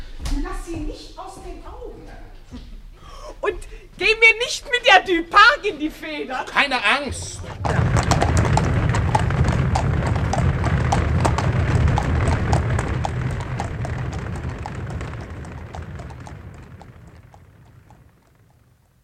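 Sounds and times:
speech: 0.5s - 2.7s, 3.4s - 8.0s
carriage wheels rumbling: 6.9s - 19.0s
horse-drawn carriage hooves clip-clopping: 7.1s - 19.0s.

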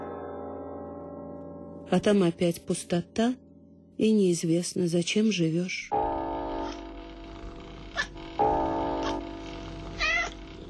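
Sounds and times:
speech: 1.9s - 3.4s, 4.0s - 6.0s
black cat purring softly: 6.6s - 10.6s
black cat meowing: 9.8s - 10.5s.

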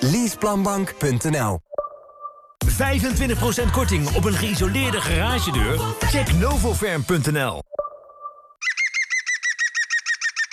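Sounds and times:
speech: 0.0s - 1.7s, 2.7s - 7.8s
European green woodpecker laughing call: 8.6s - 10.5s.

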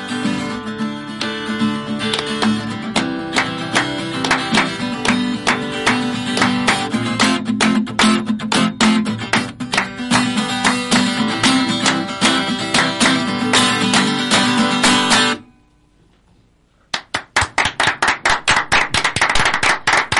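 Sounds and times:
rhythmic unison clapping: 0.3s - 15.4s, 16.9s - 20.1s
in-house audience applauding: 3.4s - 6.9s, 16.9s - 20.1s.

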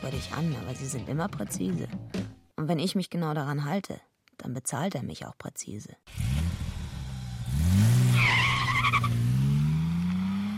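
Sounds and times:
speech: 0.0s - 6.3s
car engine roaring as car pulls away from a parking lot on Free Street: 6.1s - 10.5s
shrill car tire squeal: 7.8s - 10.5s.

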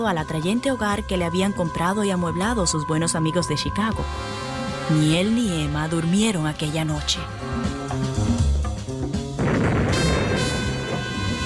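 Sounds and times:
speech: 0.0s - 8.2s
explosions of buildings being blown up: 9.4s - 11.4s.

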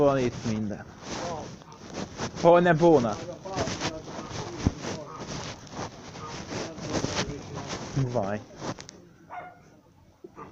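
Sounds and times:
speech: 0.0s - 1.4s, 2.4s - 3.7s, 8.0s - 8.5s
dog barking: 9.3s - 9.7s.

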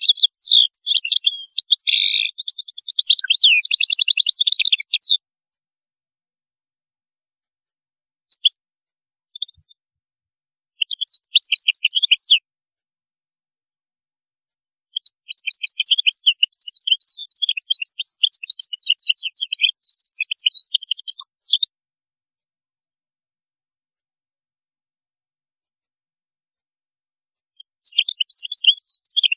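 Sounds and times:
European goldfinch song: 0.0s - 5.2s, 8.3s - 8.6s, 10.8s - 12.4s, 15.0s - 21.7s, 27.6s - 29.3s.

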